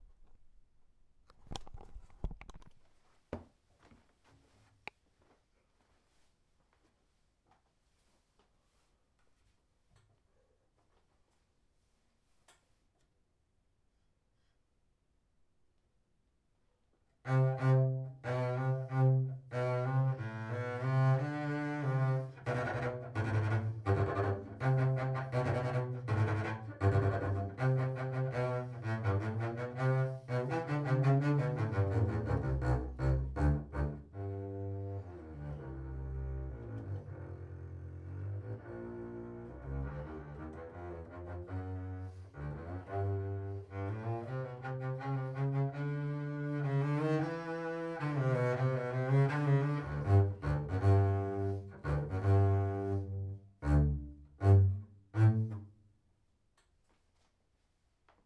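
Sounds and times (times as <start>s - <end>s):
classical allegro con brio: 17.3s - 55.7s.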